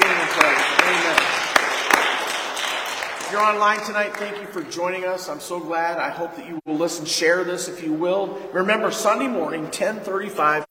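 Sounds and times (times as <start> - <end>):
audience hand clapping: 0.0 - 5.0
speech: 3.3 - 10.6.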